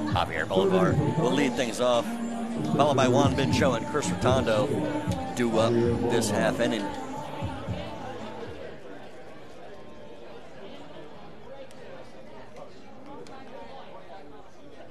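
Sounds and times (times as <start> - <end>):
ballpark crowd chatter while filing in: 0.0 - 14.8
speech: 0.2 - 7.1.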